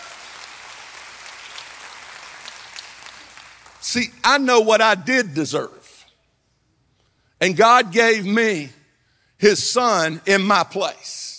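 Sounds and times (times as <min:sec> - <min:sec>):
audience clapping hands in praise: 0:00.0 - 0:04.1
speech: 0:03.8 - 0:05.8, 0:07.4 - 0:08.8, 0:09.4 - 0:11.3.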